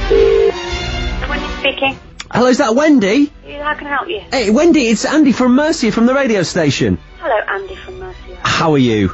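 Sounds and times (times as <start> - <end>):
telephone ringback tone calling Wendy's of Warwick: 0.1 - 0.5
speech: 1.6 - 9.1.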